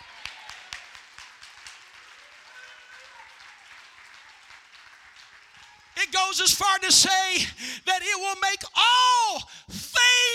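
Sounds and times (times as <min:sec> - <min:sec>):
audience clapping hands: 0:00.0 - 0:06.8
speech: 0:06.0 - 0:09.8.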